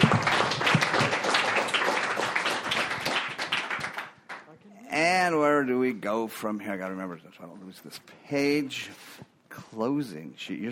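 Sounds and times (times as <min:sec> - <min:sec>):
audience applause: 0:00.0 - 0:04.5
speech: 0:06.0 - 0:10.7.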